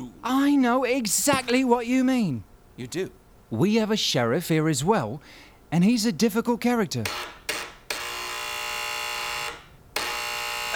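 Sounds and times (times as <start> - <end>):
speech: 0.2 - 7.4
harsh raspy electric door buzzer: 7.1 - 10.7.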